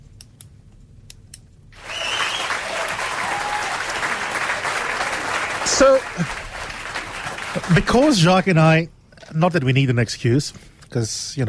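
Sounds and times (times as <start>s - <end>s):
round of applause: 1.8s - 8.4s
speech: 5.8s - 6.4s, 7.6s - 11.4s.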